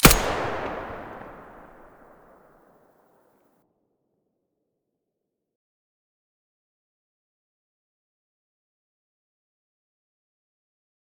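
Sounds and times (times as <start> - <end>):
weapon muzzle blasts: 0.0 - 2.1.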